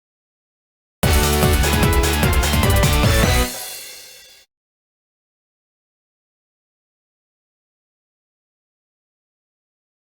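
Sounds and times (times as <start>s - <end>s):
summon music: 1.0s - 4.4s.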